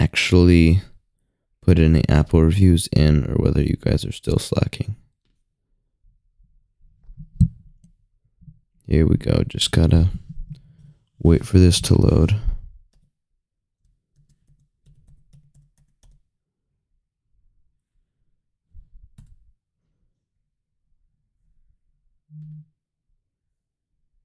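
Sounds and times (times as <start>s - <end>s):
speech: 0.2s - 0.9s, 1.7s - 5.0s, 8.9s - 10.2s, 11.2s - 12.5s
typing on a computer keyboard: 14.1s - 16.2s.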